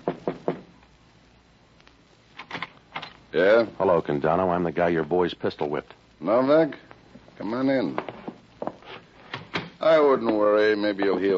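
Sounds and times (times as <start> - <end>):
knocking on a door: 0.0 - 0.7
speech: 3.3 - 8.1, 9.9 - 11.3.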